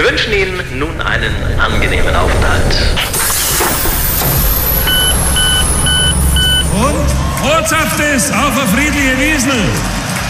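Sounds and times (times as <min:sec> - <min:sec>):
airplane engine drone at Frankfurt Airport: 0:00.0 - 0:10.2
speech: 0:00.2 - 0:03.2, 0:07.4 - 0:10.0.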